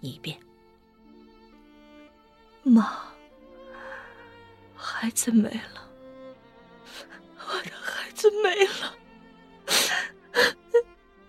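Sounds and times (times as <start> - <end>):
speech: 0.0 - 0.4, 2.7 - 3.0, 5.0 - 5.8
woman crying uncontrollably over losing her child: 6.9 - 9.0, 9.7 - 10.9.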